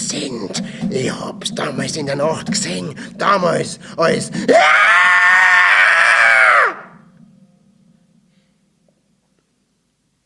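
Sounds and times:
speech: 0.3 - 5.1
old man's sudden horrible scream: 4.5 - 7.0.

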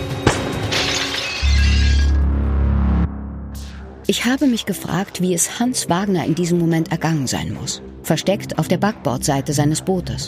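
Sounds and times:
dinner dishes shattering: 0.6 - 2.1
loud heavy low rumble: 2.1 - 4.7
speech: 4.1 - 10.2.

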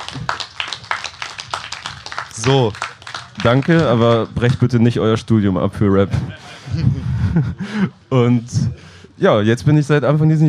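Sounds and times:
audience applause: 0.0 - 4.8
speech: 2.4 - 10.4
laughter: 5.9 - 8.0.

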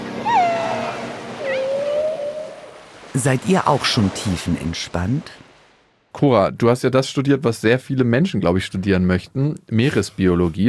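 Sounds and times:
underwater whale calls: 0.0 - 2.9
underwater dolphin chirps: 0.2 - 2.7
soft watery hiss: 0.7 - 5.8
speech: 3.1 - 5.4, 6.2 - 10.6.

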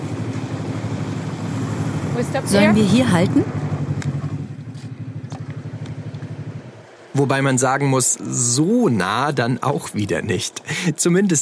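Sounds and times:
snowmobile engine running: 0.0 - 6.7
speech: 2.2 - 3.6, 7.2 - 11.4.

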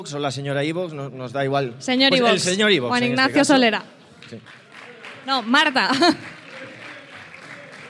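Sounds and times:
speech: 0.0 - 4.6, 5.2 - 6.4
applause: 4.1 - 7.8.

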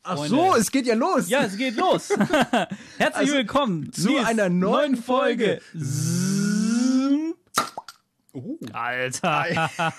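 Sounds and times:
speech: 0.1 - 6.2, 8.4 - 9.9
laughter: 1.6 - 3.2, 9.2 - 9.9
cork popping out of a bottle: 7.5 - 8.0.

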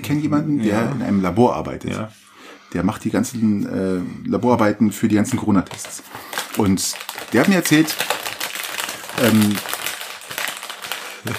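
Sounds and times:
speech: 0.1 - 8.2, 9.2 - 9.7
crinkly rustling: 5.6 - 11.3.

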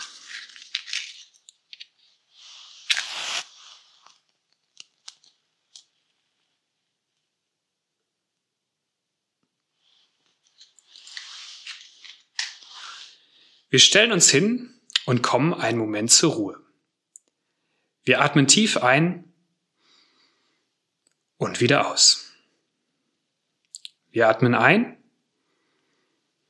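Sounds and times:
lighting a candle: 2.4 - 4.2
speech: 13.7 - 16.6, 18.1 - 19.3, 21.4 - 22.2, 24.2 - 25.0.

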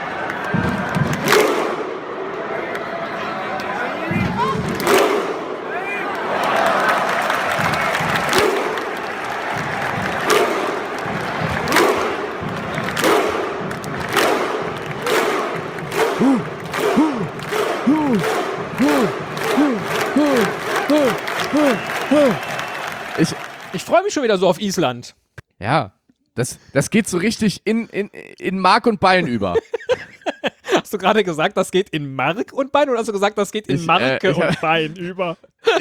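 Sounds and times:
large crowd clapping in unison: 0.0 - 24.2
laughter: 5.6 - 24.0, 27.9 - 31.4, 33.7 - 35.7
speech: 23.2 - 30.1, 30.8 - 35.7.

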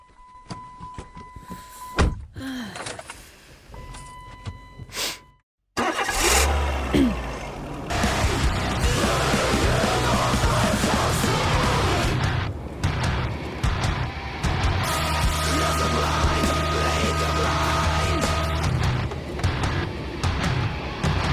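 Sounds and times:
car engine cranking and starting: 5.8 - 21.3.

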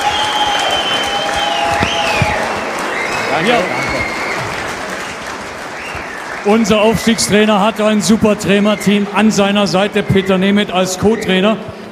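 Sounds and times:
applause: 0.0 - 8.3
speech: 3.4 - 3.8, 6.4 - 11.8.

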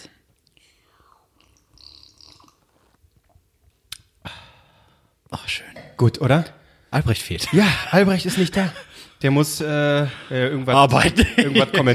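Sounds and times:
person sipping a drink: 0.4 - 4.2
speech: 5.5 - 11.9
laughter: 7.4 - 9.1, 10.0 - 11.9.

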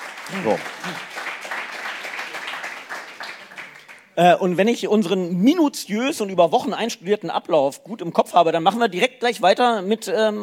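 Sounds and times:
audience applause: 0.0 - 4.1
speech: 0.3 - 1.2, 4.2 - 10.4.

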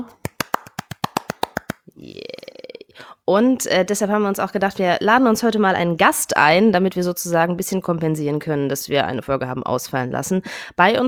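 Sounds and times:
sharp rhythmic claps: 0.0 - 1.9
speech: 3.3 - 11.0.

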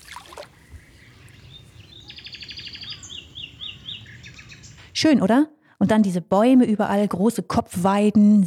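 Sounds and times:
birdsong in a riverside floodplain forest: 0.0 - 4.9
speech: 5.0 - 8.4.

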